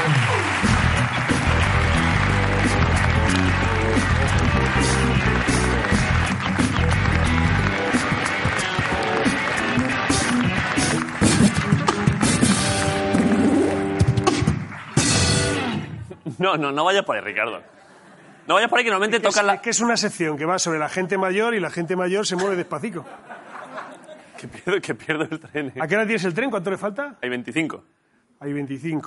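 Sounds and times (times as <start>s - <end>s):
audience applause and cheering: 0.0s - 15.9s
loud band playing: 0.0s - 16.0s
speech: 16.4s - 17.8s, 18.5s - 23.4s, 24.4s - 29.0s
laughter: 17.6s - 19.2s, 22.3s - 25.8s.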